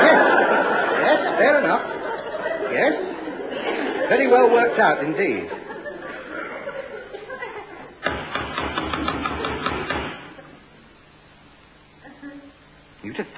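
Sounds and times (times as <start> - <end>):
laughter: 0.0 - 8.0
speech: 4.1 - 5.6, 13.2 - 13.3
rapid knocking on a door: 8.0 - 10.2.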